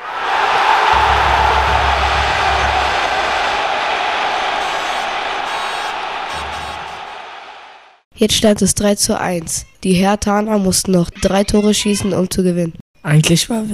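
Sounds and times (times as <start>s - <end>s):
large crowd roaring and cheering: 0.0s - 8.0s
low rumble: 1.0s - 3.7s
speech: 8.2s - 13.7s.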